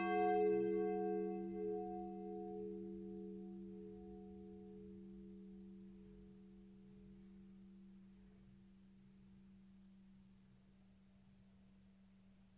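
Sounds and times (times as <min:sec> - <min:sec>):
small bell: 0:00.0 - 0:08.6.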